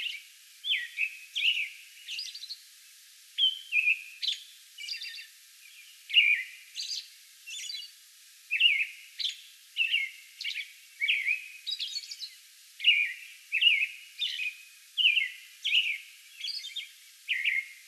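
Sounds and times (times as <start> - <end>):
American robin singing: 0.0 - 2.6, 3.4 - 7.9, 8.5 - 17.8.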